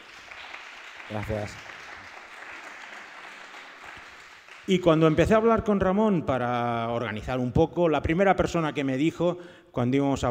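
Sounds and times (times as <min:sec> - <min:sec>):
audience applause: 0:00.0 - 0:05.0
speech: 0:01.1 - 0:01.7, 0:04.7 - 0:10.2.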